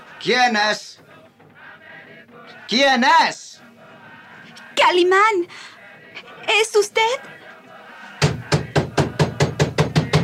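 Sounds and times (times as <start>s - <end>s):
speech: 0.2s - 1.1s, 2.7s - 3.6s, 4.8s - 5.7s, 6.4s - 7.3s
knocking on a door of a shack: 8.2s - 10.2s.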